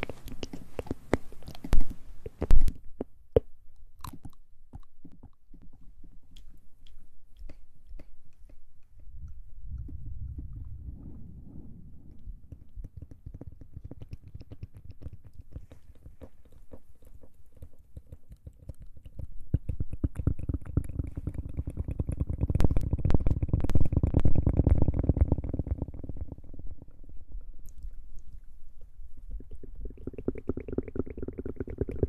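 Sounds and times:
wet mouth sounds: 0.0 - 32.0
low rumbling swells: 9.0 - 12.8.

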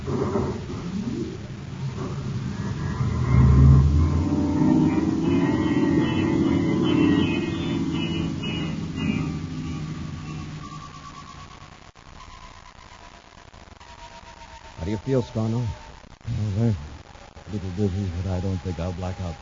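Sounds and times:
spaceship star drive engaging: 1.0 - 11.5
speech: 15.1 - 15.8, 16.5 - 16.9, 17.5 - 19.4.

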